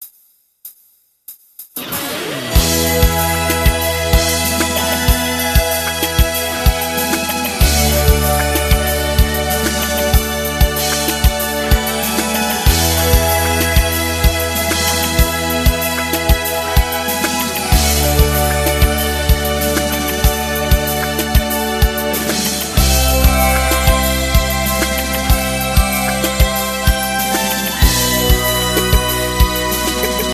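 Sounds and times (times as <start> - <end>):
opening music: 1.8 - 30.3.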